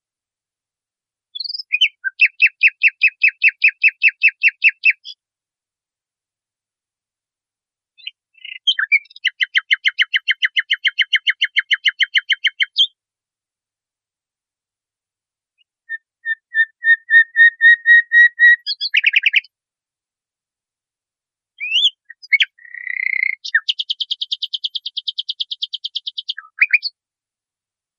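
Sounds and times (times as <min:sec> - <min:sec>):
nightingale singing: 0:01.3 - 0:05.2, 0:08.0 - 0:13.0, 0:15.6 - 0:19.5, 0:21.6 - 0:27.0.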